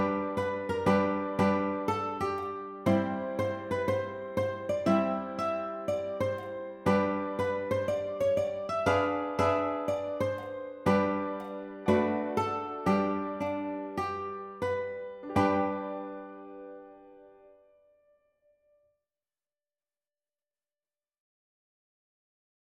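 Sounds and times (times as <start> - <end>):
ukulele: 0.0 - 17.0.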